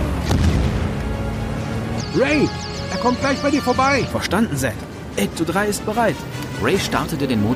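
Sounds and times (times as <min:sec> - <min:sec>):
bombs exploding: 0:00.2 - 0:00.9
speech: 0:02.1 - 0:07.5.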